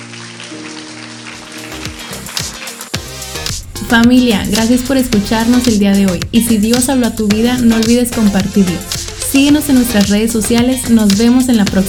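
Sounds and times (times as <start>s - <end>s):
crowd applauding: 0.0s - 3.5s
sustained keyboard chords: 0.0s - 11.8s
low bass line: 3.0s - 11.8s
speech: 3.9s - 11.8s.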